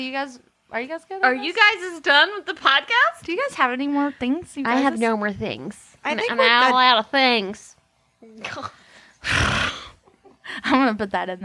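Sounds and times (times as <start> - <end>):
speech: 0.0 - 9.8, 10.5 - 11.4
person imitating a horse whinny and snort: 8.4 - 10.0.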